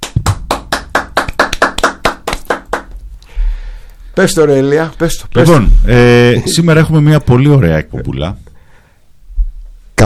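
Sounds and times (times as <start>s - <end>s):
clapping: 0.0s - 3.0s
speech: 4.2s - 8.5s.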